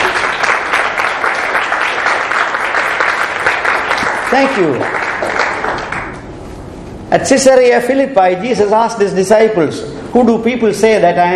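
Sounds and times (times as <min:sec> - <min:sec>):
class clapping: 0:00.0 - 0:06.3
speech: 0:04.4 - 0:05.0, 0:07.1 - 0:11.3.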